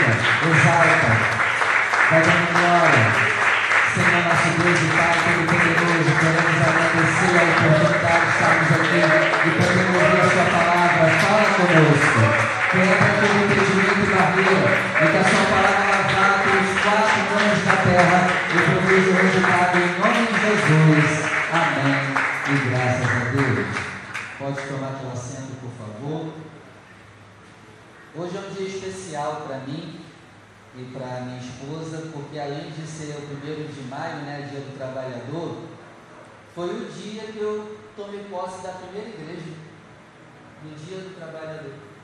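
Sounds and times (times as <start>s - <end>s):
audience applauding: 0.0s - 24.8s
speech: 28.2s - 30.0s, 30.8s - 35.7s, 36.6s - 39.6s, 40.6s - 41.8s.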